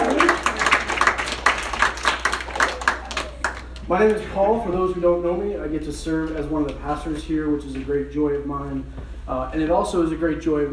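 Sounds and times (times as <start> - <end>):
audience clapping: 0.0 - 4.2
speech: 3.9 - 10.7.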